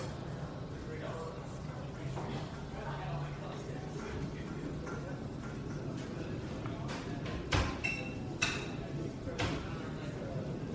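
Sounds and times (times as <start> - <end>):
murmur of voices in a coffeehouse: 0.0 - 10.7
dishes clinking and clattering: 3.9 - 9.9.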